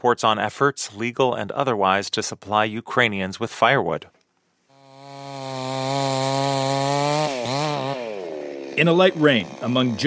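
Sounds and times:
speech: 0.0 - 4.2, 8.8 - 10.0
chainsaw cutting into a half-burnt tree: 4.7 - 10.0.

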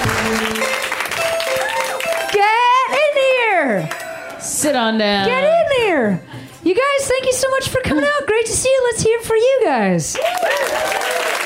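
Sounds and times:
audience clapping: 0.0 - 4.4, 10.1 - 11.4
speech: 4.6 - 11.4.

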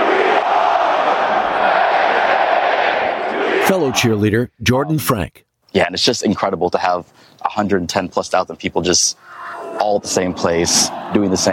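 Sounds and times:
stadium crowd chanting at Penn State's Beaver Stadium: 0.0 - 4.1
speech: 3.7 - 11.5.

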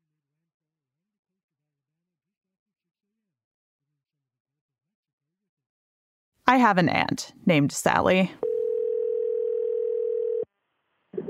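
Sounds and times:
speech: 6.5 - 8.5
telephone dial tone as call is placed: 8.4 - 10.5.

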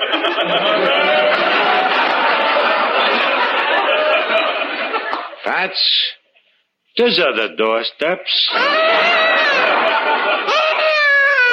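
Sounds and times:
laughter: 0.0 - 5.4, 8.5 - 11.5
speech: 5.5 - 6.2, 7.0 - 10.6
infant crying: 8.5 - 11.5.

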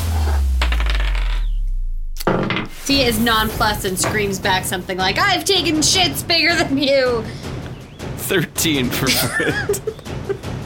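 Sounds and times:
low hum: 0.0 - 7.7
dice clattering across a hard tabletop: 0.6 - 1.4
speech: 2.9 - 7.5, 8.3 - 10.0
laughter: 8.9 - 10.5.

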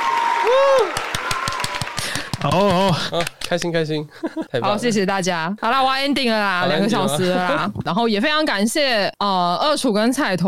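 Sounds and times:
clapping sound effect: 0.0 - 3.7
speech: 0.5 - 1.1, 2.4 - 10.4.

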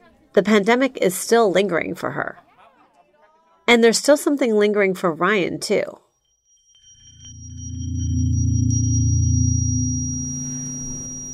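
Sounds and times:
speech: 0.4 - 2.4, 3.7 - 6.0
simulated tinnitus high-pitched ringing tone: 6.0 - 11.3
low droning rumble: 7.2 - 11.3.

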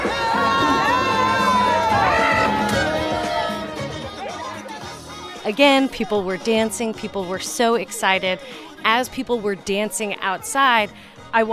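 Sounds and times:
crowd cheering jubilantly outdoors: 0.0 - 5.4
music blaring from speakers: 0.0 - 11.5
speech: 5.5 - 11.5.

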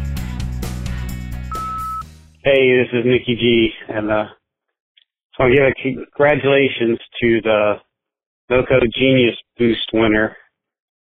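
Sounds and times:
voicemail beep: 1.5 - 2.0
speech: 2.4 - 4.4, 5.4 - 7.8, 8.5 - 10.4.

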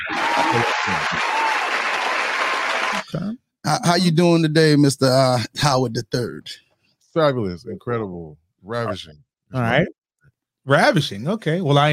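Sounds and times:
faint whoops: 0.0 - 3.0
crowd applause: 0.0 - 3.1
speech: 0.4 - 1.3, 3.7 - 6.6, 7.2 - 10.0, 10.6 - 11.9.

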